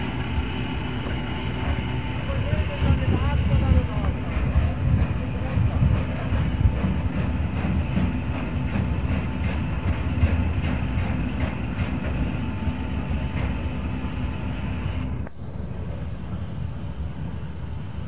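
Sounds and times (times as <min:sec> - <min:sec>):
locomotive noises: 0:00.0 - 0:18.0.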